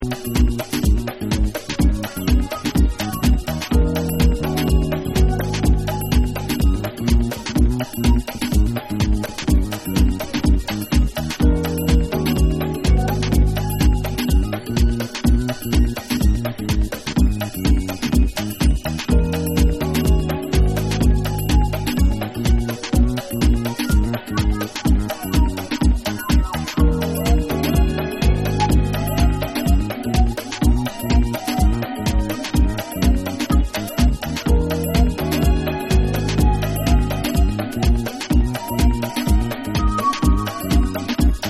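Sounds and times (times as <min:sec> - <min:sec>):
afro vibes dub music: 0:00.0 - 0:41.4.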